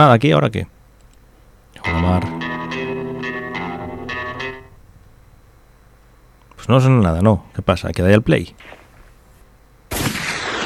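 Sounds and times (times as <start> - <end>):
speech: 0.0 - 0.8, 1.8 - 2.5, 6.7 - 8.8
gunshots: 9.9 - 10.6.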